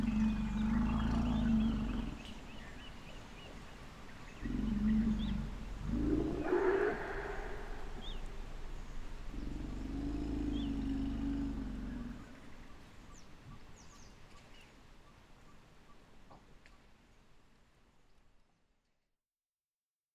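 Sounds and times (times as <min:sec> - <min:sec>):
elephants confronting: 0:00.0 - 0:02.4, 0:04.4 - 0:12.3.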